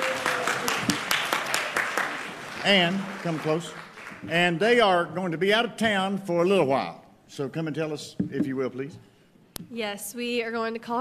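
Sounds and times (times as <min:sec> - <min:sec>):
church audience clapping for new children's directors: 0:00.0 - 0:05.2
speech: 0:02.6 - 0:11.0.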